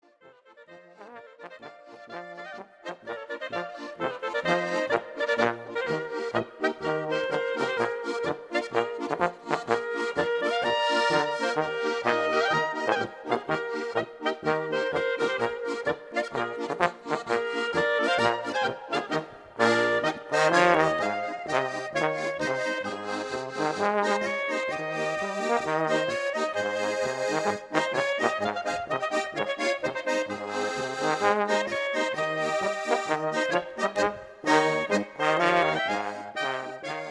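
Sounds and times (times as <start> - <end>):
polka music: 0.0 - 37.0.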